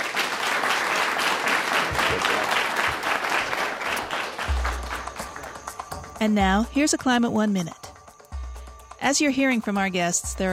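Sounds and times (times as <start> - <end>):
audience applause at the Commonwealth Club: 0.0 - 5.7
speech: 6.2 - 7.8, 9.0 - 10.5.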